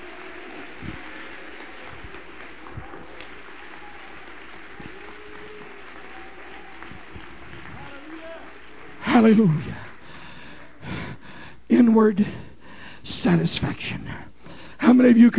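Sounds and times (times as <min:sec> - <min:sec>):
audience applause: 0:00.0 - 0:11.0
speech: 0:09.2 - 0:09.7, 0:11.9 - 0:12.4, 0:13.2 - 0:15.3.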